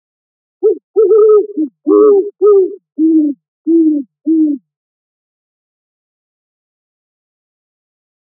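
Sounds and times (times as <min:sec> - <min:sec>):
great horned owl giving low mellow hoots: 0:00.6 - 0:04.6.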